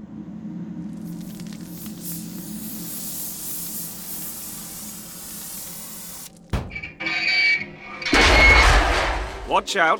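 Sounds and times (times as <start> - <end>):
oxyacetylene torch cutting into a metal door: 1.0 - 6.4
sharp clank: 6.5 - 9.6
speech: 9.5 - 9.9.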